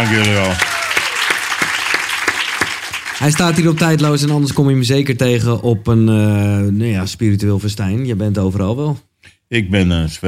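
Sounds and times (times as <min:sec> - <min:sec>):
speech: 0:00.0 - 0:00.7, 0:03.2 - 0:10.2
audience applause: 0:00.0 - 0:04.6.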